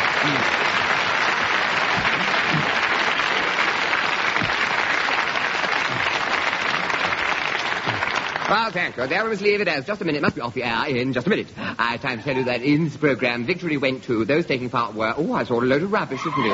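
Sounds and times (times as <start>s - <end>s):
audience applause: 0.0s - 9.6s
speech: 8.5s - 16.5s.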